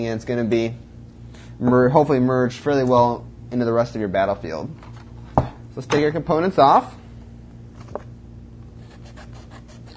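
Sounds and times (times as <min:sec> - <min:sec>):
speech: 0:00.0 - 0:00.9, 0:01.6 - 0:04.9, 0:05.8 - 0:07.0
cardboard cut along a drawn line: 0:08.8 - 0:09.9.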